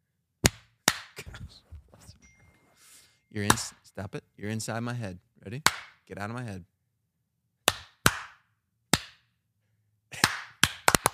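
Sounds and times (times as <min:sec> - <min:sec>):
hand clapping: 0:00.4 - 0:01.4, 0:03.5 - 0:03.8, 0:05.6 - 0:06.0, 0:07.6 - 0:09.3, 0:10.1 - 0:11.1
speech: 0:03.3 - 0:06.7.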